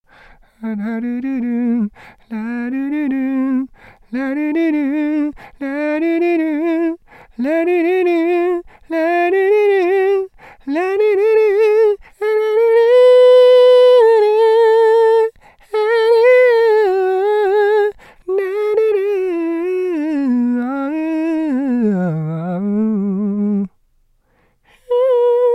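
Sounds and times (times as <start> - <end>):
person singing la la la: 0.1 - 23.8, 24.6 - 25.5.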